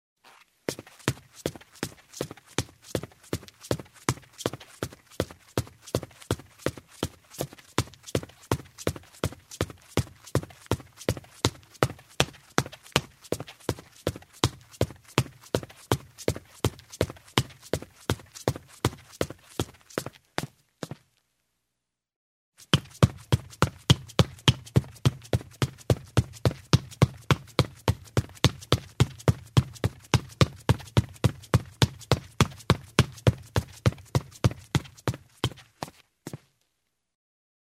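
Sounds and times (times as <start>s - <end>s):
running in shoes on a wooden floor: 0.7s - 21.0s, 22.6s - 36.4s.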